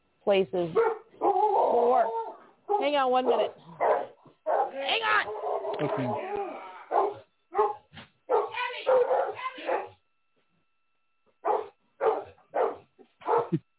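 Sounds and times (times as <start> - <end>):
speech: 0.2 - 1.0, 1.7 - 4.0, 4.8 - 6.6
dog barking: 0.7 - 6.2, 6.9 - 10.0, 11.4 - 13.6.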